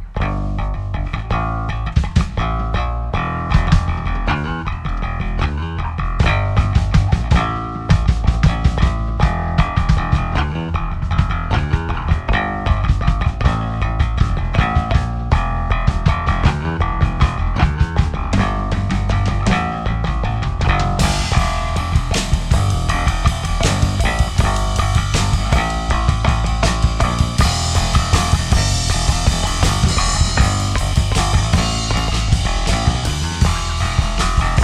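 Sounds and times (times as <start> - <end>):
Bass Station synth bass: 0.0 - 34.6.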